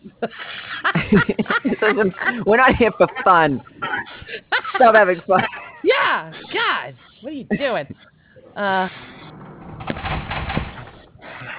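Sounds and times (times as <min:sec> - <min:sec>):
laughter: 0:00.0 - 0:08.2, 0:11.2 - 0:11.5
speech: 0:00.2 - 0:00.5, 0:01.1 - 0:03.8, 0:04.8 - 0:06.4, 0:07.4 - 0:09.1
door opening and closing: 0:08.5 - 0:11.5.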